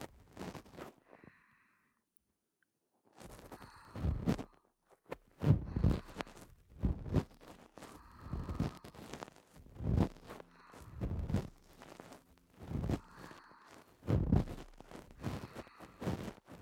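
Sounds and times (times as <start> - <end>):
ear cleaning ASMR: 5.4 - 16.6.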